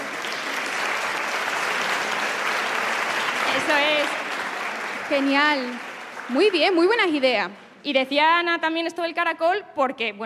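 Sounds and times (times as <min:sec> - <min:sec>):
audience applause: 0:00.0 - 0:07.3
speech: 0:03.7 - 0:04.2, 0:05.1 - 0:10.2.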